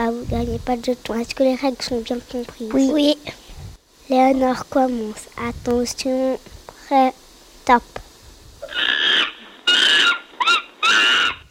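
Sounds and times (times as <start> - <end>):
speech: 0.2 - 3.4, 4.1 - 8.0
monkey calling: 8.6 - 11.4.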